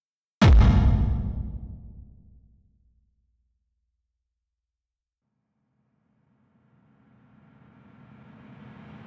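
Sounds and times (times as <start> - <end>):
rhythm one-shot sample: 0.4 - 2.4.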